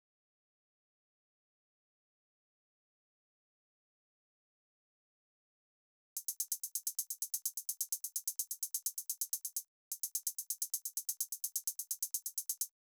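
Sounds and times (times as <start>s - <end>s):
drum loop: 6.2s - 12.7s
hi-hat sixteenth notes: 6.2s - 12.7s.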